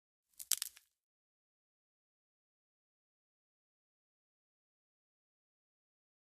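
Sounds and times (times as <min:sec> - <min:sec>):
bone breaking: 0:00.4 - 0:00.8.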